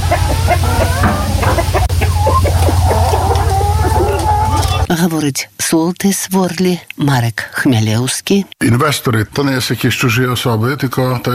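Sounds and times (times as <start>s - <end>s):
chickens clucking: 0.0s - 4.9s
low hum: 0.0s - 4.9s
speech: 4.9s - 11.3s.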